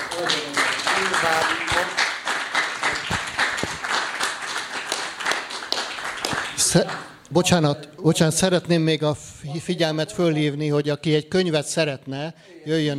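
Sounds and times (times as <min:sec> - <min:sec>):
audience applause: 0:00.0 - 0:07.1
speech: 0:06.7 - 0:12.9.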